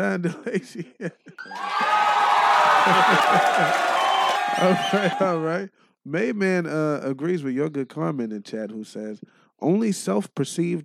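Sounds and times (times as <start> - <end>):
speech: 0.0 - 2.0, 2.8 - 3.9, 4.5 - 10.8
laughter: 0.2 - 5.5
crowd applause: 1.4 - 5.4.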